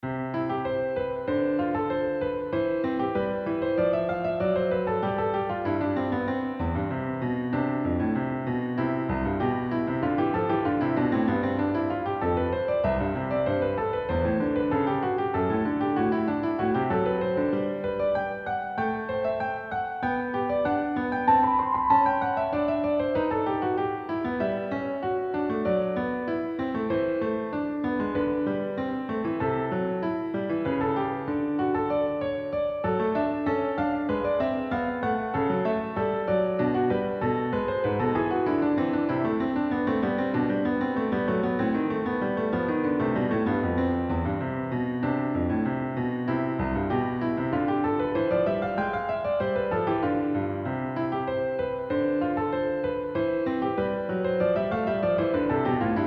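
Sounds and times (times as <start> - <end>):
piano invention: 0.0 - 56.0.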